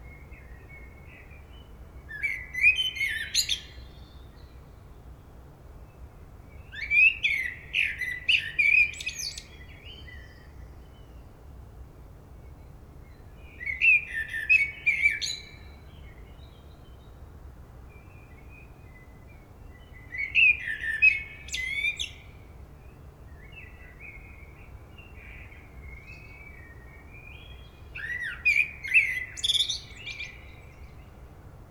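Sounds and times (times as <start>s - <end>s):
common blackbird singing: 2.1s - 3.8s, 6.8s - 10.4s, 13.6s - 15.7s, 20.0s - 22.3s, 25.0s - 31.1s.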